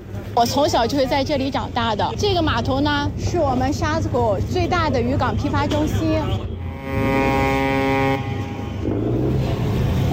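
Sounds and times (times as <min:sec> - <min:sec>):
speech: 0:00.4 - 0:07.4
fishing boat motor: 0:01.8 - 0:09.2.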